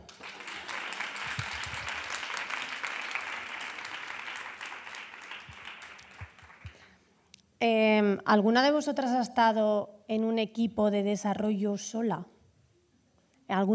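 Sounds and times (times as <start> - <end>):
audience applause: 0.0 - 6.9
speech: 7.6 - 12.3, 13.5 - 13.7.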